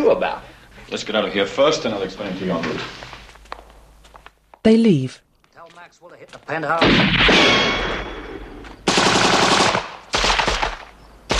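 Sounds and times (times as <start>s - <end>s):
speech: 0.1s - 3.2s, 4.6s - 5.2s, 5.8s - 8.2s
automatic gunfire in a film shootout: 8.9s - 11.3s.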